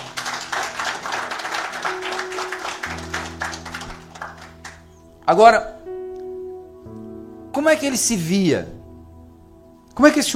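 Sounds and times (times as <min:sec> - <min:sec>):
crowd applauding: 0:00.0 - 0:05.1
sustained low organ-like tone: 0:01.9 - 0:10.3
speech: 0:05.3 - 0:05.8, 0:07.6 - 0:08.8, 0:10.0 - 0:10.3.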